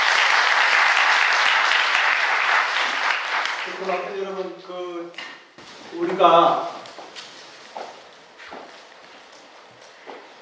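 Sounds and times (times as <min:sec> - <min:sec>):
audience applause: 0:00.0 - 0:04.2
speech: 0:03.9 - 0:05.3, 0:05.9 - 0:06.8.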